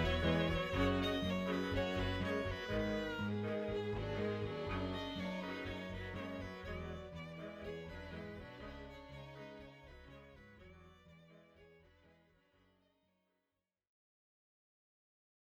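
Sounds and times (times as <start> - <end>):
string quartet: 0.0 - 12.1.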